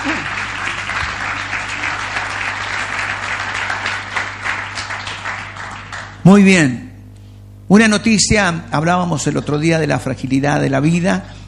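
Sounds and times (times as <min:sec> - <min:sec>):
audience applause: 0:00.0 - 0:06.2
speech: 0:06.3 - 0:06.8, 0:07.7 - 0:11.4.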